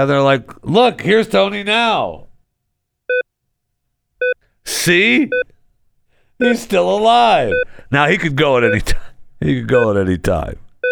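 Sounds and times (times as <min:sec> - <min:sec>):
speech: 0:00.0 - 0:02.3, 0:04.7 - 0:05.5, 0:06.4 - 0:10.6
life-support medical monitor electronic beeps: 0:03.1 - 0:03.3, 0:04.2 - 0:04.4, 0:07.5 - 0:07.7, 0:08.6 - 0:08.9, 0:09.7 - 0:10.0.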